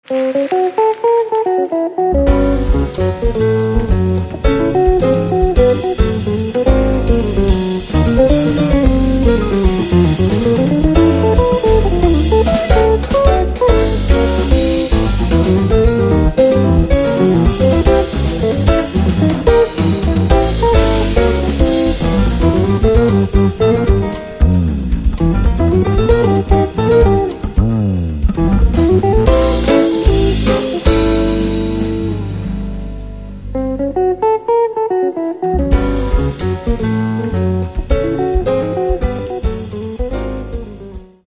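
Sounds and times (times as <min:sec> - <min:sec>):
live guitar playing: 0:00.0 - 0:41.2.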